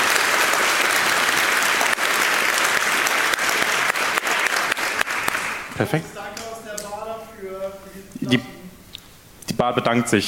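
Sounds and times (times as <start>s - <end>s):
audience applause: 0.0s - 6.6s
speech: 5.8s - 6.2s, 7.8s - 8.5s, 9.6s - 10.2s.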